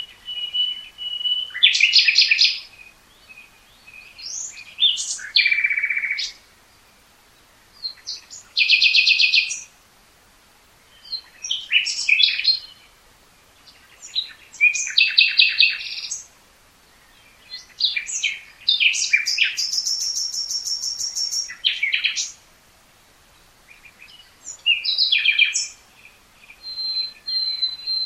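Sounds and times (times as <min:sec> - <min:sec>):
common nightingale singing: 0:00.0 - 0:09.8, 0:10.7 - 0:22.5, 0:23.2 - 0:28.0.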